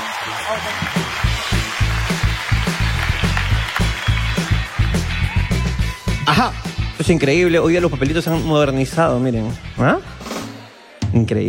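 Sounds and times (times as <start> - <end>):
crowd applauding: 0.0 - 6.4
speech: 0.2 - 1.2, 6.3 - 10.2, 11.1 - 11.4.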